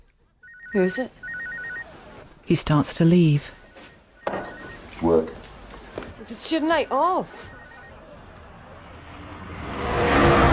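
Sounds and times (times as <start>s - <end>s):
speech: 0.7s - 1.2s, 2.5s - 3.6s, 4.3s - 5.4s, 6.3s - 7.5s
car driving through nighttime city streets: 5.5s - 10.5s.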